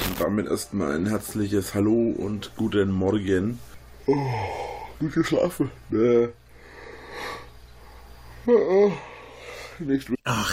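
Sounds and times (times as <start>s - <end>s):
speech: 0.2s - 6.4s, 8.4s - 9.1s, 9.8s - 10.5s
person yawning: 4.1s - 4.9s, 8.4s - 9.3s.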